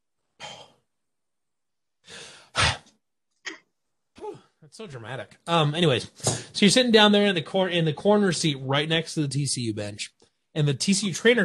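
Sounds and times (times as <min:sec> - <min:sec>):
breathy exhalations: 0:02.0 - 0:03.0, 0:06.2 - 0:06.6
speech: 0:04.8 - 0:11.4.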